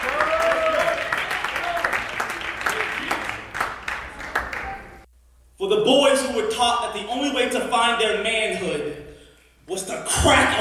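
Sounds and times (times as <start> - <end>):
cheers and whoops: 0.0 - 2.0
crowd applause: 0.0 - 5.0
speech: 5.8 - 9.0, 9.7 - 10.5.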